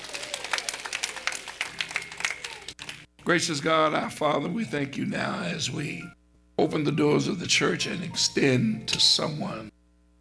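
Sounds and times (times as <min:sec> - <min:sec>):
audience clapping hands: 0:00.0 - 0:03.1
speech: 0:03.3 - 0:09.7.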